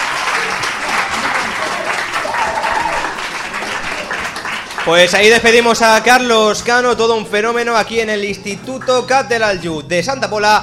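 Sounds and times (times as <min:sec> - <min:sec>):
audience applause: 0:00.0 - 0:05.8
speech: 0:04.8 - 0:10.6.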